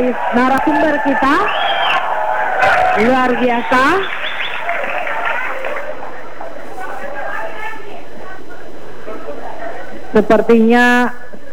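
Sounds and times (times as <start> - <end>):
speech: 0.0 - 1.8, 3.0 - 4.3, 10.1 - 11.5
audience applause: 0.0 - 8.0
laughter: 0.0 - 10.5.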